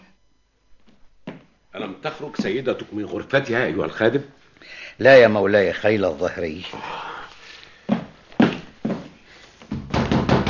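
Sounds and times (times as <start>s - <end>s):
speech: 1.8s - 7.1s
heavy banging on a door: 9.7s - 10.4s.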